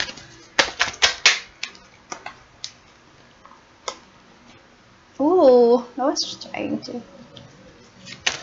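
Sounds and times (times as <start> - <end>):
tarot deck being shuffled: 0.0 - 2.8, 8.0 - 8.4
speech: 5.2 - 7.2.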